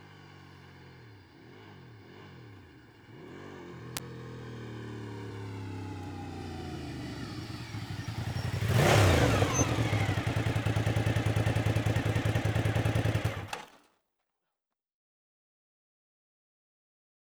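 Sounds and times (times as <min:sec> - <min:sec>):
Suzuki TL 1000 R motorcycle engine: 0:00.0 - 0:13.7.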